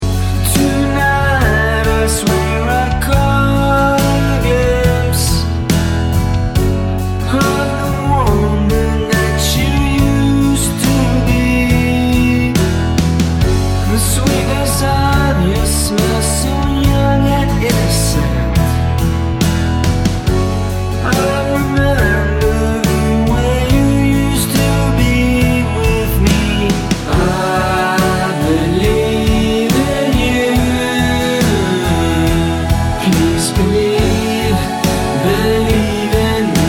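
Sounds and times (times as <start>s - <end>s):
song verse and chorus: 0.0s - 36.6s.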